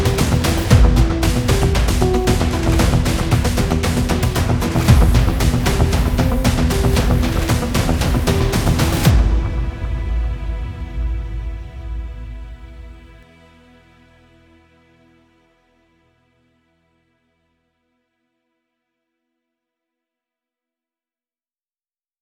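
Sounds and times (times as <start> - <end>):
tension music: 0.0 - 13.2.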